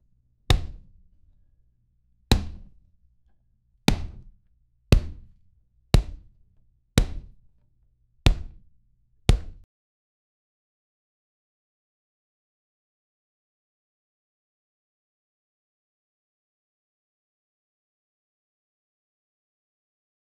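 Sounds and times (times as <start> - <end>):
ball hitting the ground: 0.5 - 0.8, 2.3 - 2.7, 3.9 - 4.3, 5.0 - 5.3, 8.3 - 8.6, 9.3 - 9.6.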